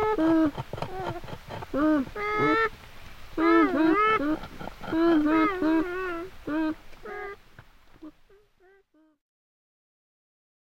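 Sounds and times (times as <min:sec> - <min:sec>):
beaver: 0:00.0 - 0:02.8, 0:03.4 - 0:07.4.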